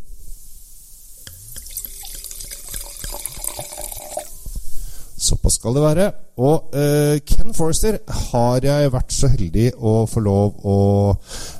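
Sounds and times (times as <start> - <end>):
wine being poured into a glass: 1.2 - 4.6
speech: 5.2 - 11.5.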